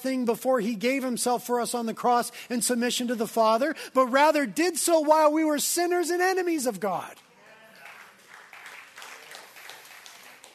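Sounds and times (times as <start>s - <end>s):
speech: 0.0s - 7.3s
sparse audience applause: 7.5s - 10.5s.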